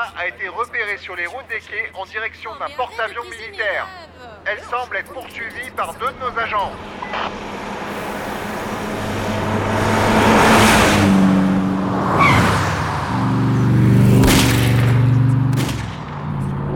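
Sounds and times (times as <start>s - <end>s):
speech: 0.1s - 7.5s
convertible car speeding past: 5.4s - 16.7s
gunfire: 14.0s - 16.5s.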